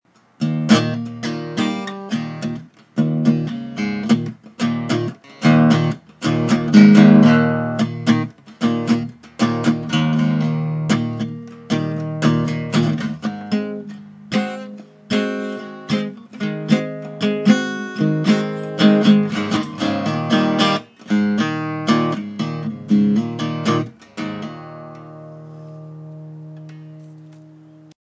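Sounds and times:
Gibson L-4 archtop guitar: 0.1s - 28.0s.

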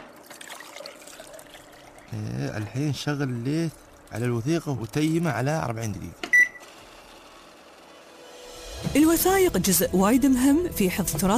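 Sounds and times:
water pouring into powder mixture number 3 during document restoration work: 0.2s - 4.1s
speech: 2.1s - 6.2s, 9.0s - 11.3s.

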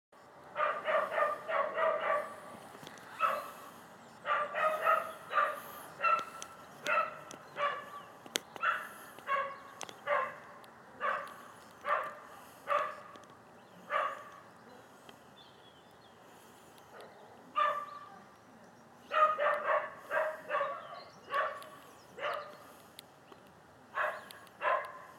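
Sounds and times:
dog barking: 0.6s - 2.4s, 3.2s - 13.2s, 13.8s - 14.4s, 17.0s - 18.1s, 19.1s - 22.6s, 23.9s - 25.1s.

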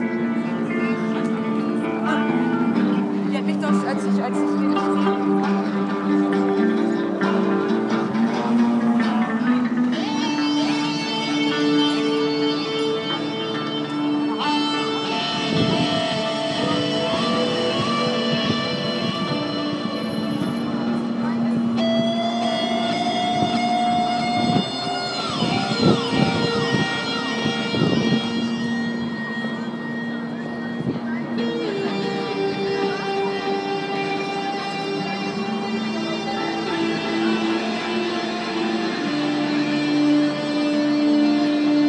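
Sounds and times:
electric guitar: 0.0s - 41.8s.

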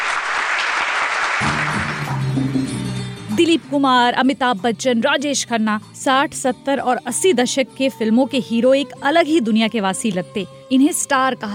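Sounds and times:
large audience applauding in cinema hall: 0.0s - 2.8s
speech: 3.4s - 11.5s.

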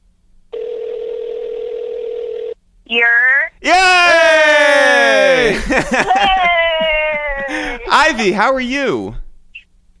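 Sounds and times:
telephone dial tone: 0.5s - 2.6s
speech: 2.9s - 4.0s, 5.8s - 6.9s, 8.0s - 9.2s
laughter: 4.6s - 8.9s.

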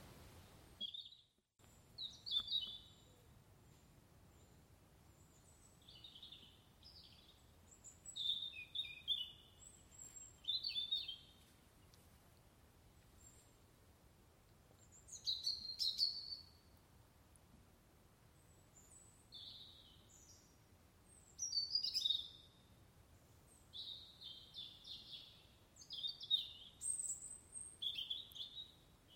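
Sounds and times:
birdsong at Seckley viewpoint: 0.8s - 3.3s, 4.4s - 12.0s, 14.8s - 16.7s, 18.4s - 20.6s, 21.1s - 22.7s, 23.5s - 29.1s.

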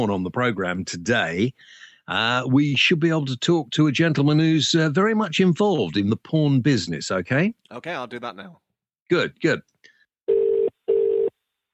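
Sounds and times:
speech: 0.0s - 9.7s
telephone ringing tone: 10.3s - 11.4s.

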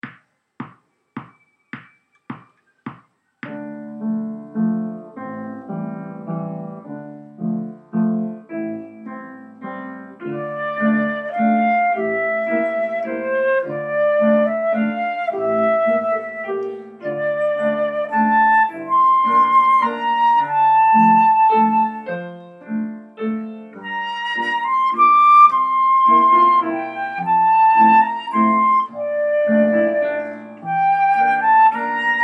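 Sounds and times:
waltz music: 3.4s - 32.2s.

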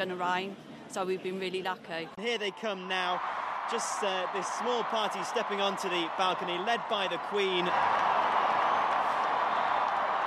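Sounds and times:
speech: 0.0s - 8.0s
large crowd roaring and cheering as the Queen appears on the balcony: 2.3s - 10.2s.

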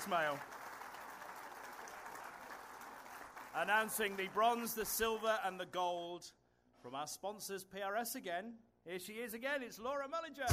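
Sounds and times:
speech: 0.0s - 0.6s, 3.5s - 10.5s
audience applause at an awards ceremony: 0.0s - 5.2s.

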